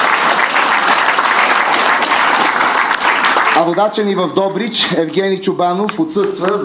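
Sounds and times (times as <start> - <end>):
audience clapping: 0.0 - 4.6, 5.9 - 6.6
speech: 3.6 - 6.6.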